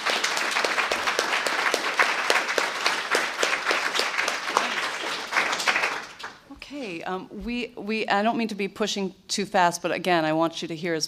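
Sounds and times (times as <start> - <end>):
audience applause: 0.0 - 6.4
speech: 7.1 - 11.0.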